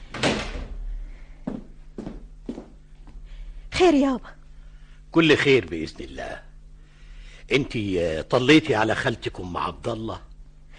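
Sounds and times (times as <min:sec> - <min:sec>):
door shutting with heavy thud: 0:00.0 - 0:00.8
footsteps: 0:01.4 - 0:03.2
speech: 0:03.8 - 0:04.4, 0:05.2 - 0:06.5, 0:07.5 - 0:10.3.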